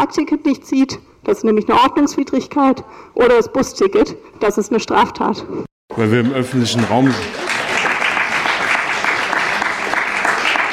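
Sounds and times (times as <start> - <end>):
speech: 0.0 - 7.4
audience applause: 6.2 - 10.7.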